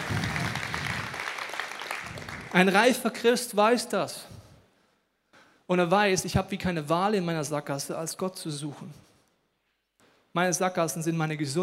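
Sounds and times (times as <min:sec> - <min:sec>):
audience applause: 0:00.0 - 0:02.6
speech: 0:02.5 - 0:04.3, 0:05.7 - 0:09.1, 0:10.3 - 0:11.6.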